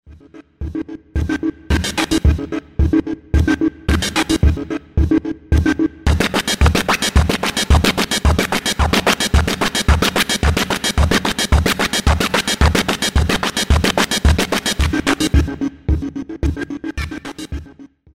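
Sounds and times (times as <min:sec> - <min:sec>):
beats: 0:00.1 - 0:17.8.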